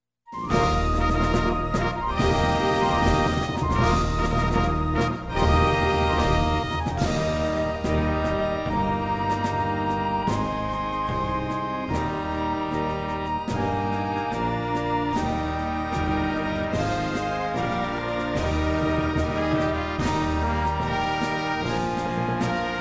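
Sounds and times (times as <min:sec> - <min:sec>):
orchestral accompaniment in E flat: 0:00.3 - 0:22.7.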